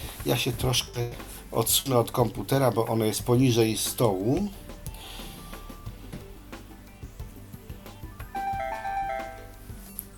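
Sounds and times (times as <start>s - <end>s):
speech: 0.2s - 4.6s
braille display electronic startup chime: 8.4s - 9.8s.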